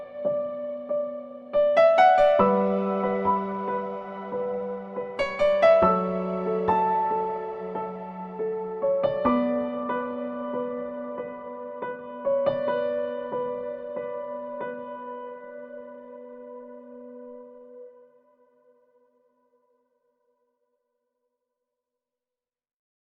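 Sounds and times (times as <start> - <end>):
nostalgic and sad piano background music: 0.0 - 18.2.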